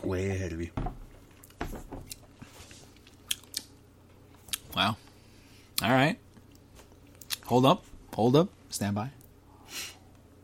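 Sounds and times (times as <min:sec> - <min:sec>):
speech: 0:00.0 - 0:01.0, 0:04.8 - 0:05.0, 0:05.8 - 0:06.2, 0:07.5 - 0:09.8
food bitten and chewed during a taste test: 0:01.2 - 0:04.8, 0:05.7 - 0:07.5.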